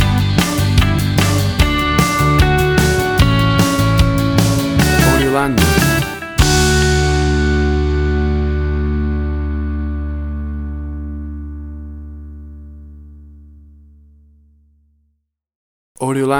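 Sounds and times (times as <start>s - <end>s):
1990s pop rock ballad: 0.0s - 12.2s.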